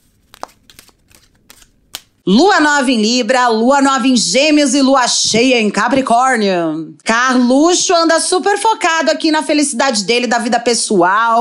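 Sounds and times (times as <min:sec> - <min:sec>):
oracle cards being shuffled: 0:00.0 - 0:02.2
speech: 0:02.3 - 0:11.4.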